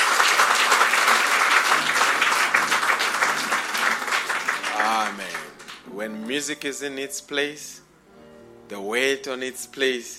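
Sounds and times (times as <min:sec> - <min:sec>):
audience applause: 0:00.0 - 0:05.8
speech: 0:06.3 - 0:07.8, 0:08.7 - 0:10.1.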